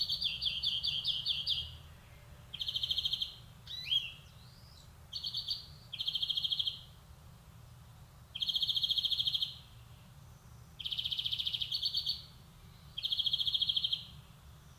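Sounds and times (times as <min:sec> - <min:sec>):
European greenfinch Chloris chloris song of buzzy trills and twittering: 0:00.0 - 0:01.8, 0:02.5 - 0:06.9, 0:08.4 - 0:10.0, 0:10.8 - 0:14.2.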